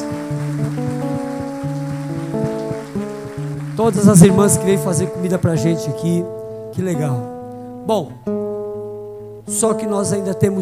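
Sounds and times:
audience applause: 0.0s - 5.2s
speech: 3.8s - 8.4s, 9.5s - 10.6s.

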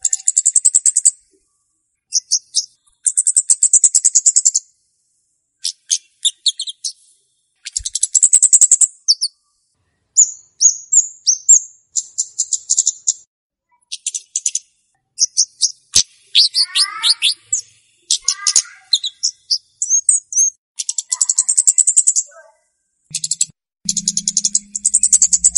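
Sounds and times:
flowerpecker song: 0.0s - 4.7s, 5.6s - 25.5s.

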